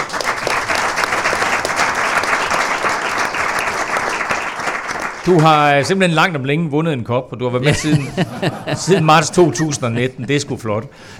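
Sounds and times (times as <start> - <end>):
small round of applause: 0.0 - 6.0
speech: 5.2 - 11.1
laughter: 7.6 - 10.7.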